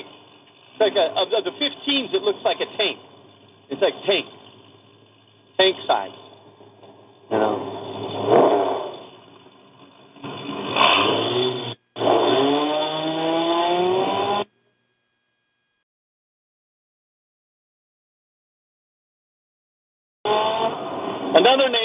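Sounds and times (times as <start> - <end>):
off-road racing truck engine roaring at the Parker 425: 0.0 - 14.5, 20.3 - 21.8
speech: 0.8 - 3.1, 3.7 - 4.4, 5.6 - 6.2, 7.3 - 7.7.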